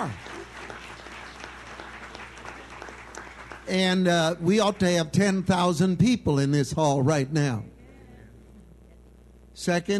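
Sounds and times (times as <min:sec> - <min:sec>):
audience clapping: 0:00.0 - 0:05.6
speech: 0:03.7 - 0:07.7, 0:09.6 - 0:09.9.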